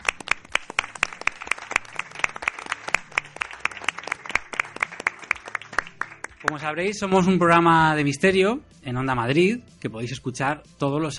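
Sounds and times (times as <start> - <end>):
audience applause: 0.0 - 6.7
speech: 6.4 - 11.1.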